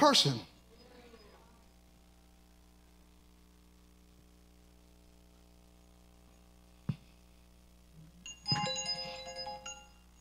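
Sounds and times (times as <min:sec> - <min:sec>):
alarm going off: 0:08.3 - 0:10.0.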